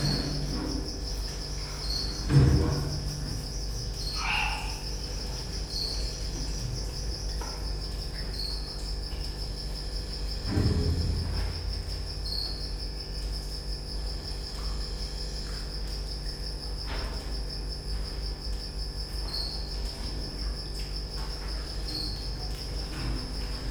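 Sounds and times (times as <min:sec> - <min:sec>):
cricket trilling: 0:00.0 - 0:23.6
low electrical hum: 0:00.0 - 0:23.6
thud: 0:02.3 - 0:03.0, 0:10.4 - 0:12.2.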